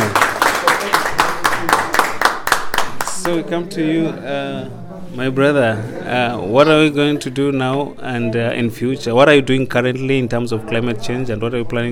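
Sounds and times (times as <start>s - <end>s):
audience clapping in rhythm: 0.0s - 3.4s
speech: 3.3s - 11.9s.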